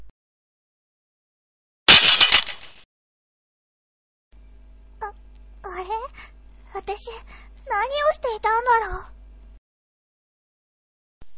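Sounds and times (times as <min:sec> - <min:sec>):
blue gemstone of a pendant shattering: 0:01.9 - 0:02.8
speech: 0:06.9 - 0:09.1.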